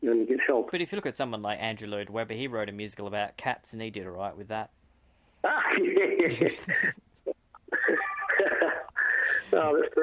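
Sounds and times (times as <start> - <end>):
speech: 0.2 - 4.8, 5.4 - 7.1, 9.5 - 10.0
laughter: 5.5 - 7.0, 7.7 - 10.0
phone ringing: 7.7 - 10.0.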